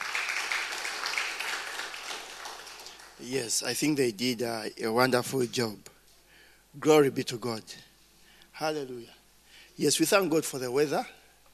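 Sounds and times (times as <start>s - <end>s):
audience applause: 0.0s - 3.3s
speech: 3.2s - 5.9s, 6.8s - 7.9s, 8.6s - 9.2s, 9.8s - 11.2s.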